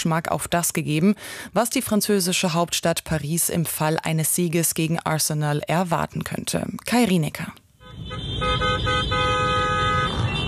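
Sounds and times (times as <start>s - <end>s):
speech: 0.0s - 9.2s
car horns honking: 7.8s - 10.4s
low rumble of motorcycles and traffic: 7.8s - 10.4s.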